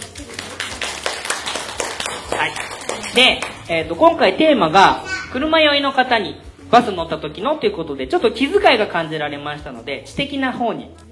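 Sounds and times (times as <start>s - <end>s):
small group clapping: 0.0s - 3.9s
speech: 2.4s - 11.0s.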